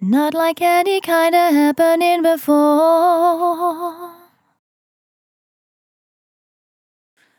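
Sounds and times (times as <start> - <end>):
vocal in F at 65 bpm: 0.0 - 4.4.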